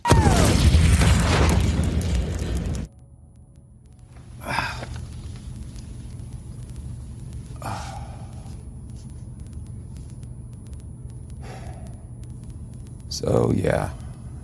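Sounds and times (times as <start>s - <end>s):
loud roaring explosion: 0.0s - 2.9s
quiet low hum: 0.0s - 14.4s
speech: 13.2s - 14.0s.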